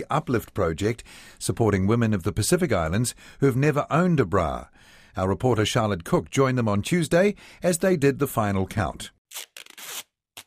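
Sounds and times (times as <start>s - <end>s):
speech: 0.0s - 10.1s
packing tape ripping off the roll to seal a cardboard box: 9.3s - 10.4s.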